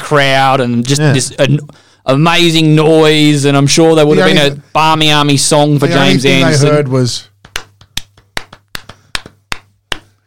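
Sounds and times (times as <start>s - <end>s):
speech: 0.1s - 7.3s
sparse golf clap: 7.4s - 10.2s.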